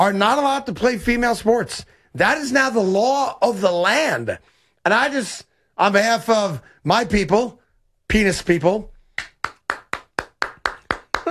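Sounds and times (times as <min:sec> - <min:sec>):
speech: 0:00.0 - 0:08.9
slow polite golf clap: 0:09.1 - 0:11.3.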